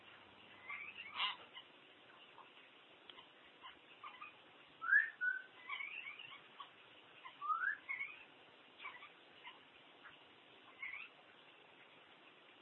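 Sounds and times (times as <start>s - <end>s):
common hill myna squawking: 0.6s - 1.7s, 3.2s - 9.6s.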